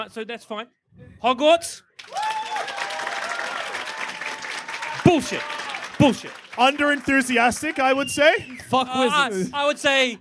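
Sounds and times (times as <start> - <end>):
speech: 0.0 - 2.2, 5.0 - 10.1
audience cheering and whooping: 2.0 - 6.2
audience applause: 2.0 - 8.5.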